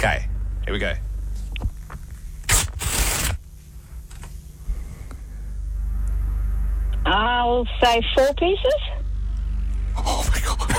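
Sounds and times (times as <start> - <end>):
speech: 0.0 - 1.1, 7.2 - 8.9
low rumble: 0.0 - 10.7
several sheets of paper being ripped: 2.5 - 3.4.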